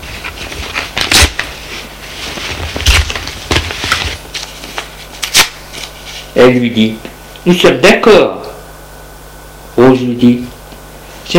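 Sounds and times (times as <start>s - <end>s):
soft paper rustling: 0.0s - 6.3s
letter being torn up by hand: 0.4s - 1.5s, 4.8s - 6.0s
speech: 6.4s - 8.5s, 9.9s - 10.6s.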